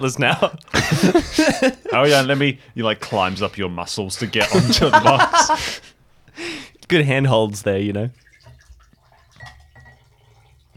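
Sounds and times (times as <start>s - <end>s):
speech: 0.0s - 8.2s
laughter: 0.2s - 2.5s, 4.1s - 5.8s
water being poured: 7.5s - 10.7s.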